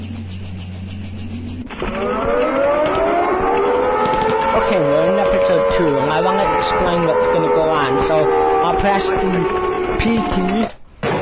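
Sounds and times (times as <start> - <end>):
computer game helicopter landing sound effect: 0.0 - 10.7
speech: 5.8 - 10.8.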